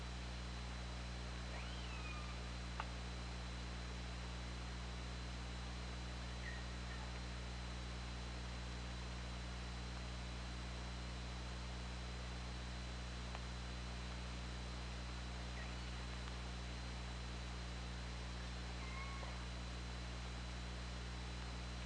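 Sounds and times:
low hum: 0:00.0 - 0:21.8
orca whistled call: 0:01.5 - 0:02.4.

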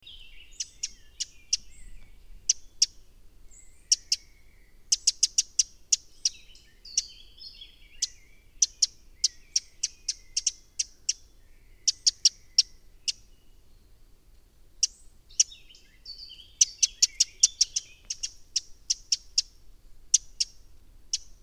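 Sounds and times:
faint chirps from other birds: 0:00.0 - 0:14.1, 0:14.8 - 0:21.4
Eurasian wren ticking: 0:00.6 - 0:03.0, 0:04.9 - 0:06.4, 0:08.0 - 0:11.3, 0:11.9 - 0:13.2, 0:16.6 - 0:21.4.

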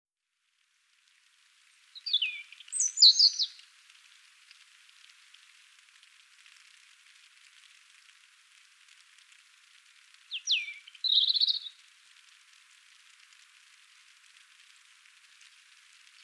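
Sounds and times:
European robin song: 0:02.0 - 0:03.6, 0:10.3 - 0:11.8.

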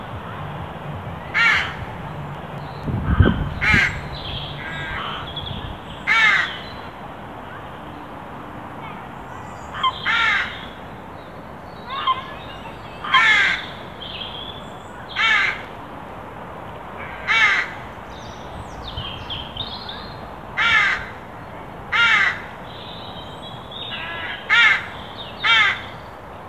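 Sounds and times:
carrion crow cawing: 0:01.4 - 0:01.8, 0:03.0 - 0:05.3, 0:06.1 - 0:06.7, 0:09.8 - 0:10.7, 0:13.0 - 0:13.7, 0:15.2 - 0:15.6, 0:17.0 - 0:17.8, 0:20.6 - 0:21.2, 0:21.9 - 0:22.5, 0:23.9 - 0:25.9.

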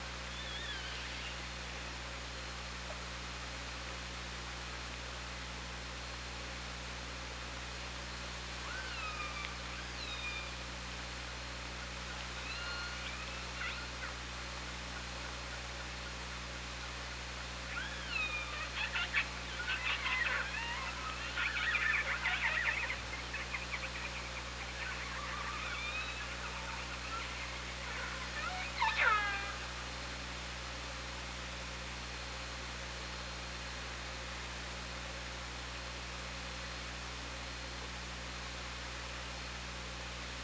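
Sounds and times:
steady hiss and hum: 0:00.0 - 0:40.4
killer whale calls: 0:08.6 - 0:10.6, 0:12.4 - 0:14.2, 0:17.7 - 0:29.9.

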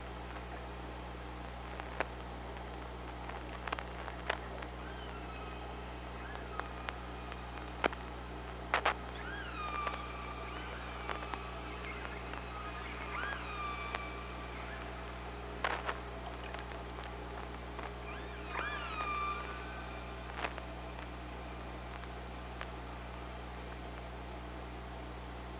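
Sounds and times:
constant low mechanical hum: 0:00.0 - 0:25.5
killer whale sharp clicks: 0:01.7 - 0:15.0, 0:15.6 - 0:21.2
killer whale tonal calls underwater: 0:04.4 - 0:08.0, 0:08.8 - 0:22.6.

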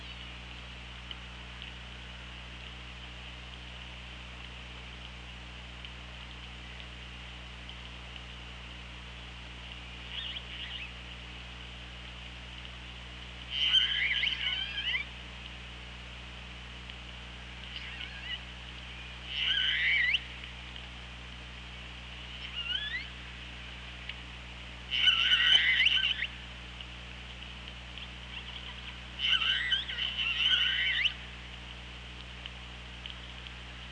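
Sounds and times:
quiet hum: 0:00.0 - 0:33.8
killer whale calls: 0:13.5 - 0:15.1, 0:17.7 - 0:18.5, 0:19.2 - 0:20.4, 0:22.3 - 0:23.3, 0:24.9 - 0:26.4, 0:28.3 - 0:31.3.

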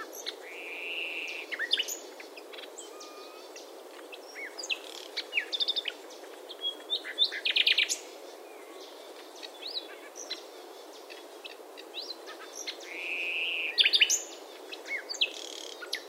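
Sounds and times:
common nightingale singing: 0:00.0 - 0:16.0.

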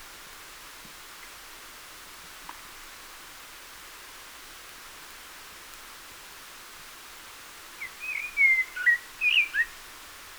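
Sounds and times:
common blackbird warbled whistles: 0:08.0 - 0:09.7.

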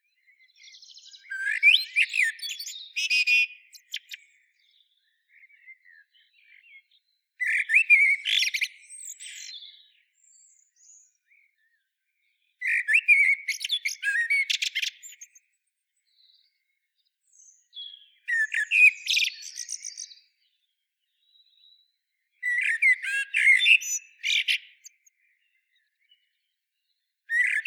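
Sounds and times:
Common blackbird twittering: 0:00.4 - 0:11.8, 0:12.6 - 0:15.4, 0:17.3 - 0:20.3, 0:22.4 - 0:26.3, 0:27.3 - 0:27.6.

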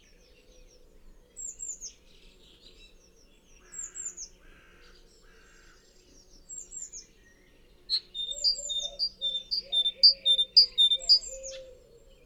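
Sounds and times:
great tit calling: 0:07.9 - 0:11.6.

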